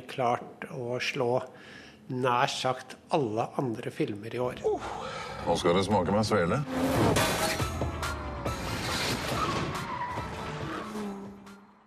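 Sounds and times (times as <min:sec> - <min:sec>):
speech: 0:00.2 - 0:07.6
car tires spinning in a burnout at a ferry landing in Norway: 0:06.4 - 0:11.8.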